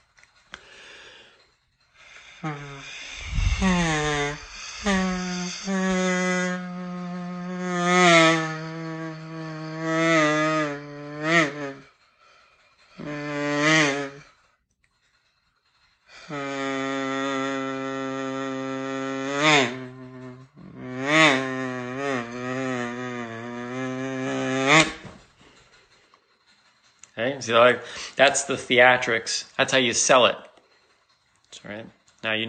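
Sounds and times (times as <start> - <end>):
kazoo imitating mosquito whine: 2.0 - 12.0, 12.8 - 14.4, 16.1 - 25.2
speech: 2.4 - 3.0, 27.4 - 30.5, 31.6 - 32.4.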